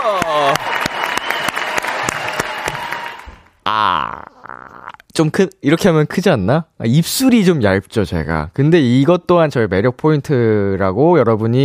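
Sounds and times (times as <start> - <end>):
speech: 0.0 - 0.7, 5.2 - 11.6
applause: 0.0 - 3.6.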